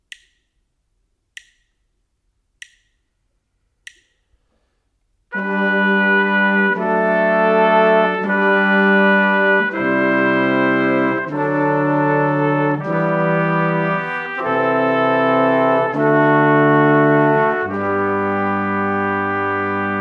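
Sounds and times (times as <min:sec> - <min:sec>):
brass quartet: 0:05.3 - 0:19.9.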